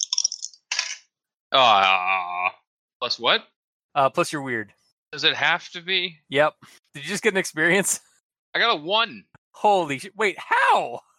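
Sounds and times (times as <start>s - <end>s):
dice clattering across a table: 0.0s - 1.0s
speech: 1.6s - 2.0s, 3.1s - 11.1s.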